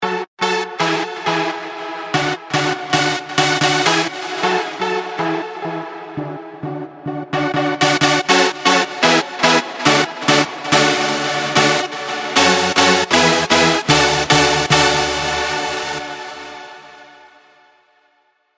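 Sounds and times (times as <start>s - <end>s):
arpeggio: 0.0s - 16.6s.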